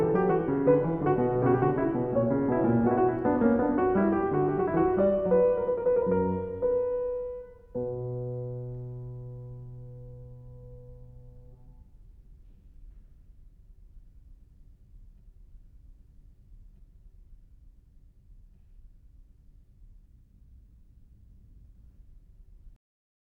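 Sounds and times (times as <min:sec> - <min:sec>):
single-voice piano invention in B minor: 0:00.0 - 0:12.1.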